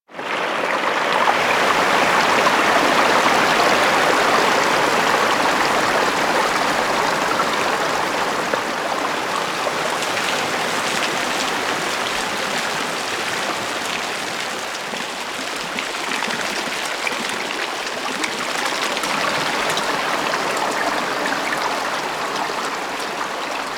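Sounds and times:
waterfall: 0.2 - 23.7.

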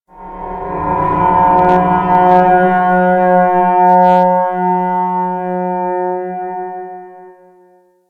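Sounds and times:
creepy screech: 0.1 - 5.1.

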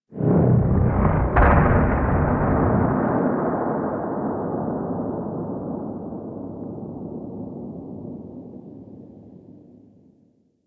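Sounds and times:
distant seismic explosion in Gas City: 0.2 - 8.2.

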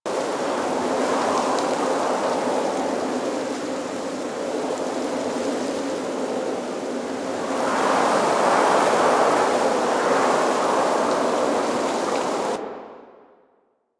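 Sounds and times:
angry wind in trees: 0.1 - 13.2.

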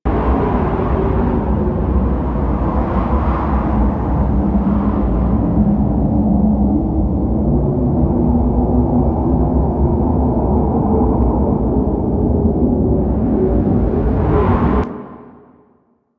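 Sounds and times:
small cave tunnel ambience: 0.1 - 15.7.

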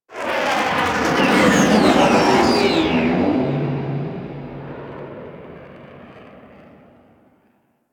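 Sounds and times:
ship flying by: 0.4 - 7.1.

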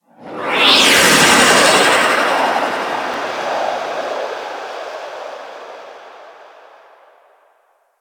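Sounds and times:
spaceship fly-by: 0.0 - 7.4.

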